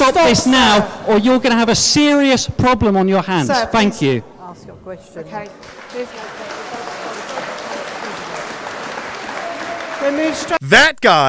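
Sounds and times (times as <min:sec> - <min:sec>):
speech: 0:00.1 - 0:06.5, 0:10.0 - 0:11.2
audience applause in recorded clip: 0:05.4 - 0:10.6.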